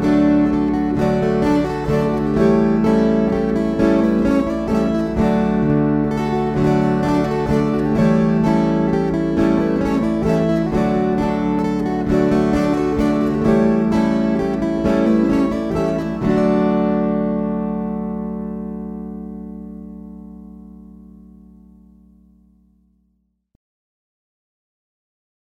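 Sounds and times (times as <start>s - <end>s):
waltz music: 0.0s - 18.7s.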